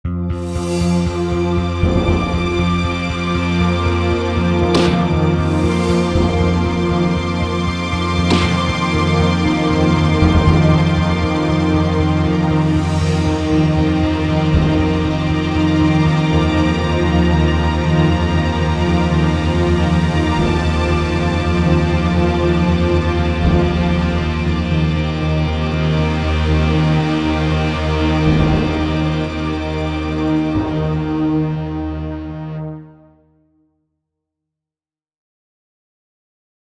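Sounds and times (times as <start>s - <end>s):
ambient music: 0.1s - 33.5s.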